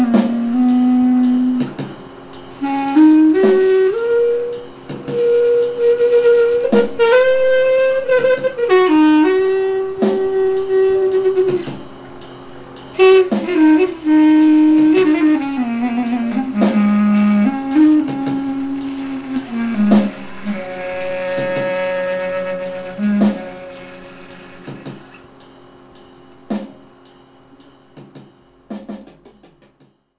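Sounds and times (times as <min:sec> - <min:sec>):
saxophone: 0:00.0 - 0:01.9, 0:02.6 - 0:11.9, 0:12.9 - 0:25.3
musical accompaniment: 0:00.0 - 0:29.8.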